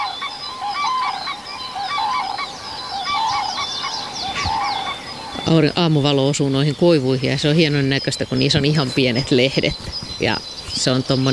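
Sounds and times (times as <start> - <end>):
cranes calling: 0.0 - 11.3
speech: 5.5 - 11.3.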